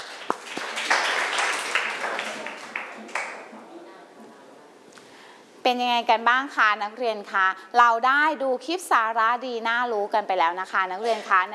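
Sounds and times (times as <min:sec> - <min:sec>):
applause: 0:00.0 - 0:03.5
speech: 0:05.7 - 0:11.5.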